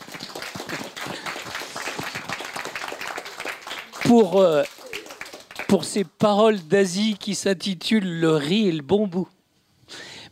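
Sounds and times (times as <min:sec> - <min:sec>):
audience applause: 0:00.0 - 0:06.0
speech: 0:04.1 - 0:04.7, 0:05.7 - 0:09.4.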